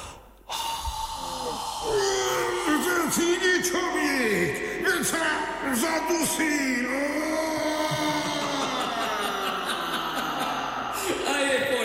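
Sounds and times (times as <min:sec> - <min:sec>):
strong breath blown out by a character in the Popolvar fairy tale: 0:00.0 - 0:02.7
speech: 0:03.1 - 0:08.4
laughter: 0:05.8 - 0:11.8.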